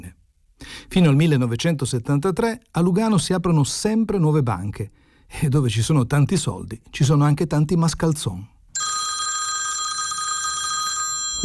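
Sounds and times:
speech: 0:00.8 - 0:08.6
telephone ringing with a high electronic trill: 0:08.8 - 0:11.4.

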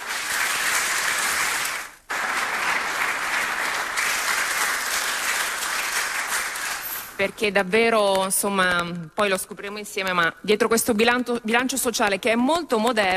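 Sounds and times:
audience applause: 0:00.0 - 0:07.2
speech: 0:07.2 - 0:13.1.

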